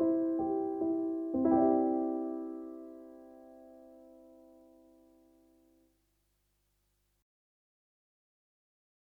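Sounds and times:
piano version of a piece: 0.0 - 5.8.

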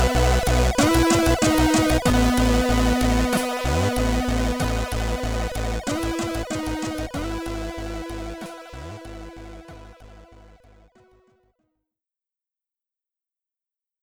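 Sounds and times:
Commodore 64 SID stereo loading music: 0.0 - 10.5.

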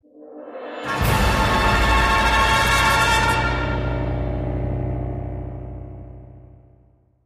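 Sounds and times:
heavy combat music intro: 0.8 - 6.5.

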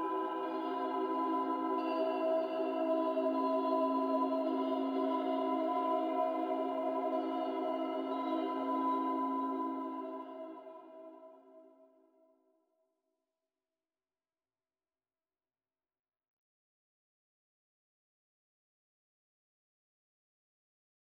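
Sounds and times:
temple chimes at night: 0.0 - 11.0.

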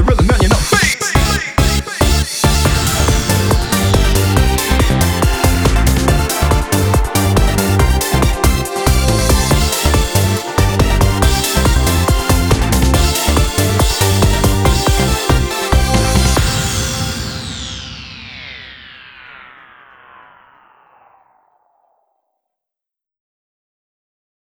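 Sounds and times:
bass: 0.2 - 17.7.

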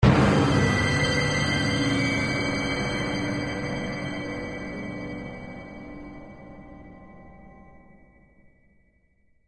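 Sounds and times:
shock stinger: 0.0 - 4.9.

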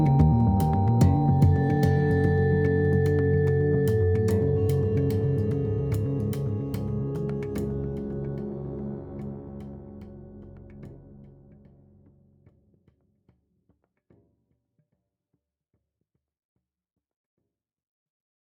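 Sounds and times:
action loop: 0.0 - 7.8.

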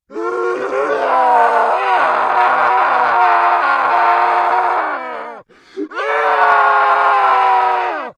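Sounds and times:
person screaming: 0.1 - 8.1.

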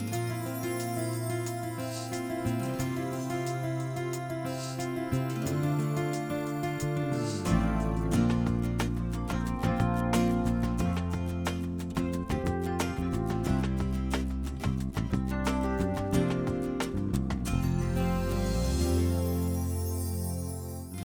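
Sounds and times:
date music: 0.0 - 21.0.

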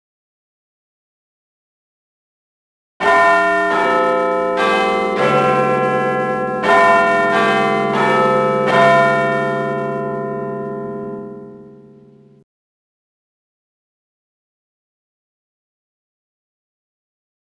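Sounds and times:
Big Ben clock tower bell chiming: 3.0 - 12.4.

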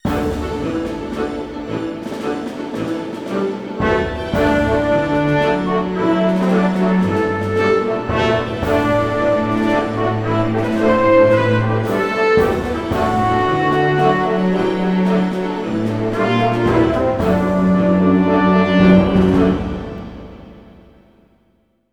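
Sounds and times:
victory jingle: 0.0 - 20.6.

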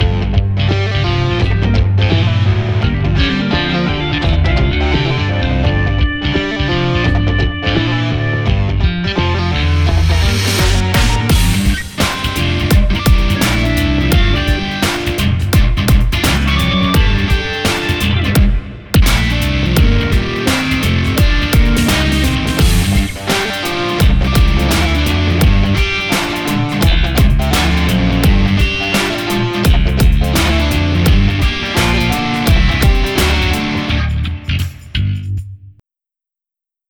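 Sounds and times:
rock version music: 0.0 - 35.4.

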